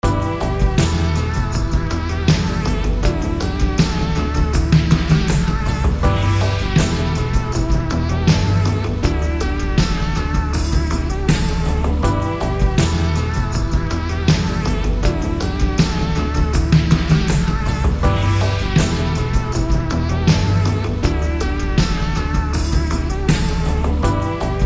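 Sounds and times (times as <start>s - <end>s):
1980s music loop: 0.0s - 24.6s.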